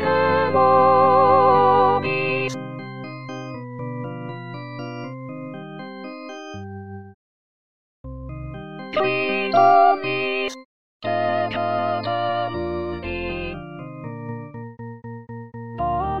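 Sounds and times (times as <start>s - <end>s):
women singing: 0.0s - 2.6s, 9.0s - 12.6s.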